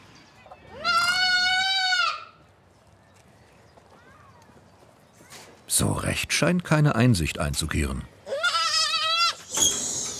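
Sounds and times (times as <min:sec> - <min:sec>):
young goat kid bleating: 0:00.7 - 0:02.3, 0:08.2 - 0:09.5
speech: 0:05.8 - 0:08.2.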